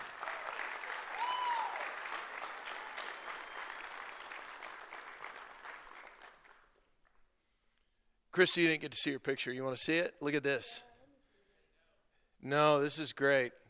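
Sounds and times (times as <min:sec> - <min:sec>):
crowd applauding guests onto the stage: 0:00.0 - 0:07.2
speech: 0:08.4 - 0:10.9, 0:12.5 - 0:13.6.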